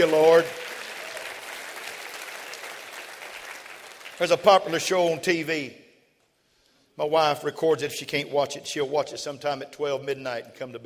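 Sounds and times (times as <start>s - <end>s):
speech: 0.0s - 0.6s, 4.2s - 5.8s, 7.0s - 10.8s
crowd applause: 0.0s - 4.4s.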